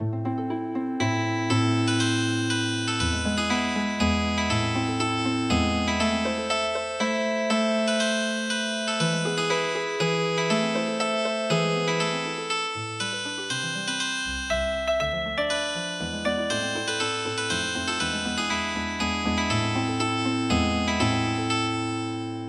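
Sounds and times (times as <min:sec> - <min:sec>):
healing harp music: 0:00.0 - 0:22.4.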